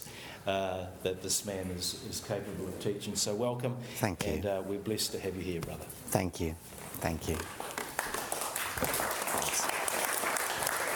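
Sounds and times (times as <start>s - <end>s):
speech: 0.4s - 7.7s
crowd applause: 7.8s - 10.9s.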